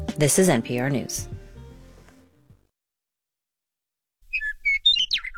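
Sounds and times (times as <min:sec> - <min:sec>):
speech: 0:00.2 - 0:01.3
Western Meadowlark song: 0:04.3 - 0:05.3.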